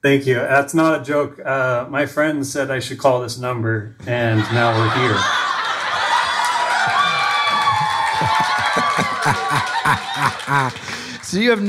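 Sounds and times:
speech: 0:00.0 - 0:05.5, 0:10.5 - 0:11.6
laughter: 0:04.2 - 0:11.0
crowd cheering and whooping: 0:04.4 - 0:11.2.

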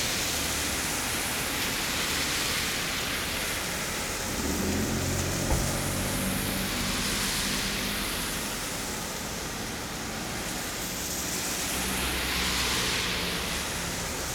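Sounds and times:
car tires hissing on wet road on a rainy day: 0:00.0 - 0:14.3
low car engine swell: 0:03.9 - 0:08.8.

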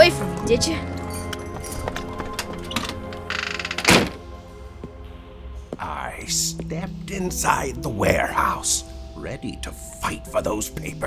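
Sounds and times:
door opening: 0:00.0 - 0:04.3
speech: 0:00.1 - 0:01.0, 0:06.2 - 0:11.0.

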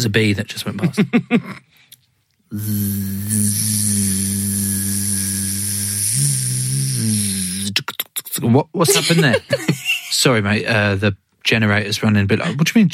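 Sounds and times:
speech: 0:00.0 - 0:01.8, 0:02.5 - 0:05.1, 0:08.4 - 0:12.9
voice imitating a tattoo machine buzzing: 0:02.5 - 0:08.3
laughter: 0:08.9 - 0:10.1.

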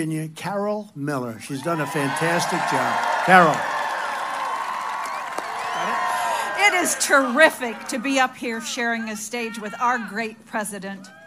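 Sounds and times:
speech: 0:00.0 - 0:03.7, 0:06.6 - 0:11.2
rally crowd cheering and applauding: 0:01.5 - 0:08.6.

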